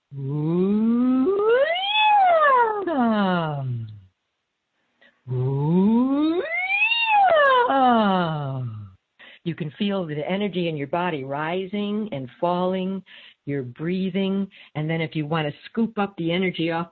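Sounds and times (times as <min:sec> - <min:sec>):
speech: 0:00.1 - 0:00.4, 0:09.6 - 0:16.8
voice imitating a siren, low to high: 0:00.1 - 0:04.0, 0:05.3 - 0:08.9.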